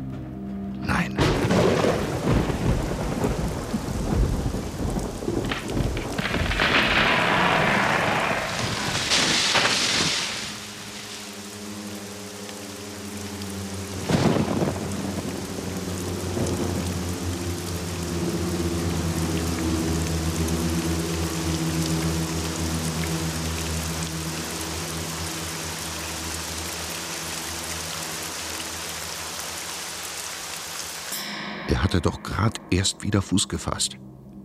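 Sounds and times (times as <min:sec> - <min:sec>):
steady rain in a thunderstorm: 0:00.8 - 0:32.8
loud rumbling thunder: 0:01.2 - 0:10.6, 0:14.0 - 0:15.6
speech: 0:31.9 - 0:34.1.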